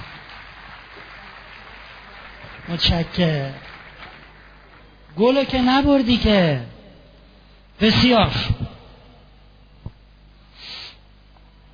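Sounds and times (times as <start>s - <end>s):
audience clapping: 0.0s - 6.0s
speech: 2.6s - 3.7s, 5.2s - 6.7s, 7.8s - 8.6s.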